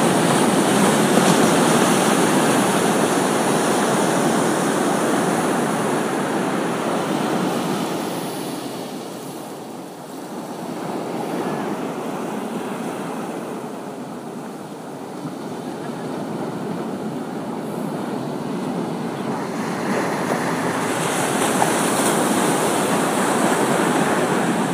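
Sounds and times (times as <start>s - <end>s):
waves crashing: 0.0s - 24.7s.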